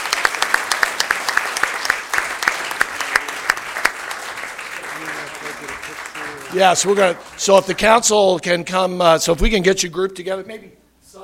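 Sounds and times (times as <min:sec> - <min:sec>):
round of applause: 0:00.0 - 0:08.3
speech: 0:06.5 - 0:10.8.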